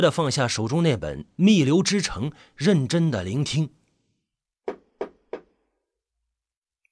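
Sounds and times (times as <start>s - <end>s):
speech: 0.0s - 3.8s
knocking on a door: 4.7s - 5.5s.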